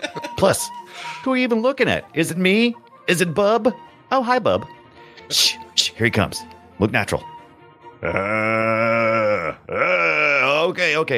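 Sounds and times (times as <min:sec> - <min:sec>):
speech: 0:00.4 - 0:07.3, 0:08.0 - 0:08.8, 0:10.7 - 0:11.1
voice letting out zombie-like growling groans: 0:08.0 - 0:10.7.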